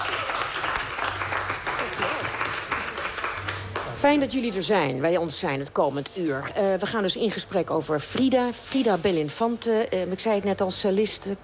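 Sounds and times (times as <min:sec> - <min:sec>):
audience applause: 0:00.0 - 0:04.0
speech: 0:04.0 - 0:11.4.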